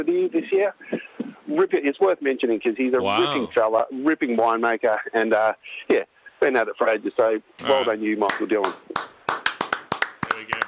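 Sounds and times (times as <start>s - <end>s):
speech: 0.0s - 8.8s
hosts applauding: 8.2s - 10.6s.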